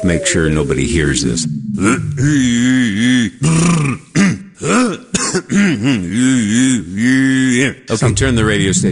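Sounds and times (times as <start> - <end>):
speech: 0.0 - 4.0, 5.5 - 6.6, 7.6 - 8.9
person clearing throat: 1.8 - 6.9.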